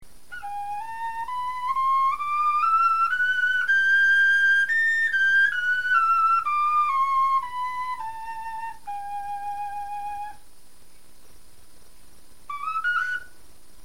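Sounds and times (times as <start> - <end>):
bone flute playing a scale: 0.3 - 10.4, 12.5 - 13.4.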